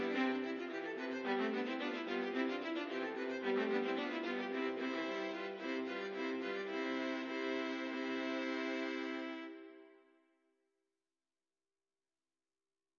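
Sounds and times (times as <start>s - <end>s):
classical trio piece: 0.0s - 9.8s.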